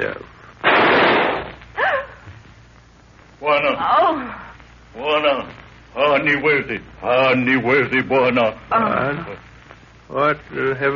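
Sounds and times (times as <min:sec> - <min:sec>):
speech: 0:00.0 - 0:00.4, 0:03.5 - 0:09.5, 0:10.1 - 0:10.9
gunshot: 0:00.6 - 0:01.6.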